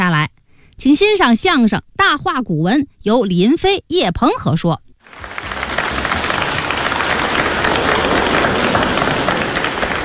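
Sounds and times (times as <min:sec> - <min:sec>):
speech: 0:00.8 - 0:05.4
audience applause: 0:05.0 - 0:10.0.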